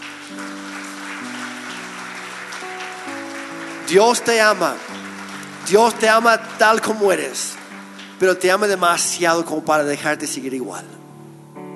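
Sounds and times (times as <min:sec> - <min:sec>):
audience applause: 0:00.0 - 0:08.8
sustained keyboard chords: 0:00.0 - 0:11.7
speech: 0:03.9 - 0:05.0, 0:05.7 - 0:07.6, 0:08.2 - 0:11.0.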